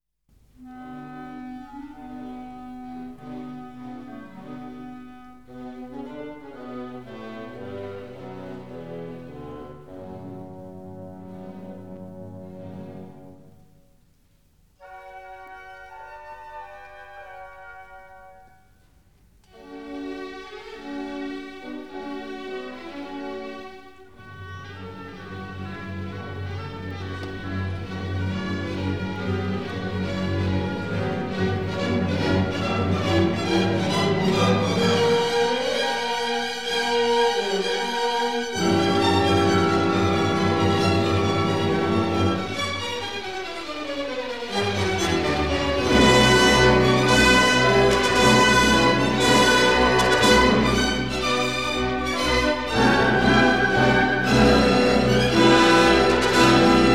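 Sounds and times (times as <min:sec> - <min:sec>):
cello concerto: 0:00.6 - 0:14.1, 0:19.4 - 0:56.9.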